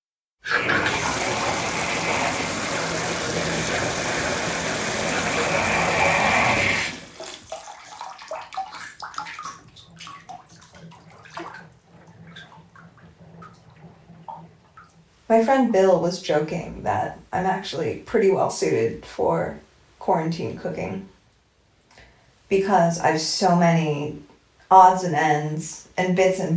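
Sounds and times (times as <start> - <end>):
water pouring into a bathtub: 0.4 - 15.0
speech: 15.3 - 21.1, 22.5 - 26.5.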